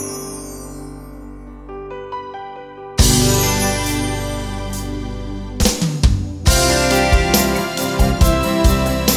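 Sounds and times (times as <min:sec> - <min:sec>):
rock ballad: 0:03.0 - 0:09.1.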